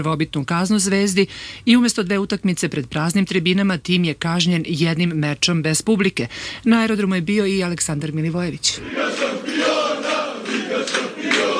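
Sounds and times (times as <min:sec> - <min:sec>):
speech: 0:00.0 - 0:09.5
Red Star Belgrade football fans cheering and chanting at Nikola Tesla airport: 0:08.8 - 0:11.5.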